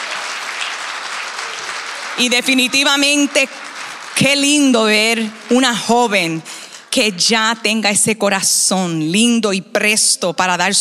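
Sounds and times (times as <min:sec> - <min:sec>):
crowd applause: 0:00.0 - 0:07.0
speech: 0:02.2 - 0:03.6, 0:04.2 - 0:10.7.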